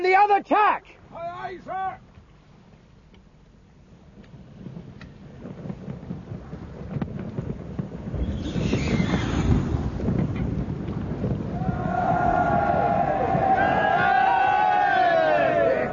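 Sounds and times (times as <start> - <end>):
speech: 0.0 - 2.1
steady low rumble and rushing noise: 4.4 - 15.9
ship's crew cheering: 11.5 - 15.9.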